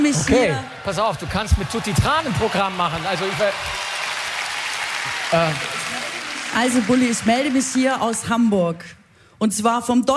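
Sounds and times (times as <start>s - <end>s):
speech: 0.1s - 3.9s, 5.0s - 10.1s
audience clapping at the Deutscher Radiopreis in Hamburg: 0.7s - 8.7s.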